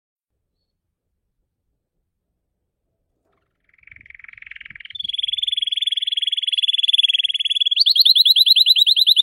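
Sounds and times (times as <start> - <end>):
blue Belgian canary singing: 3.6 - 9.2.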